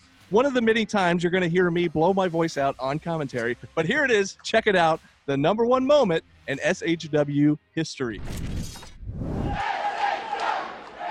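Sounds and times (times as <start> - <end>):
speech: 0.3 - 8.5
packed wrestling arena crowd cheering and yelling: 9.4 - 11.0.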